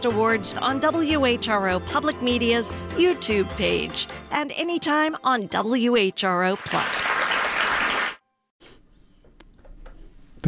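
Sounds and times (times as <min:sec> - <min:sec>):
speech: 0:00.0 - 0:07.2
applause: 0:06.5 - 0:08.2.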